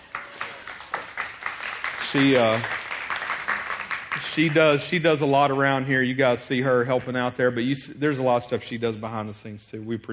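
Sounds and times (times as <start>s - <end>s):
audience applause for a birthday during a church service: 0.0s - 4.9s
speech: 2.1s - 2.8s, 4.3s - 10.1s.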